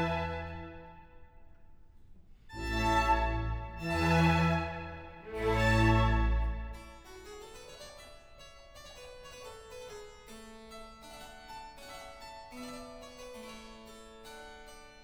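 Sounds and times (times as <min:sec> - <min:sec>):
trumpet, strings and continuo slow movement: 0:00.0 - 0:01.0, 0:02.6 - 0:07.0.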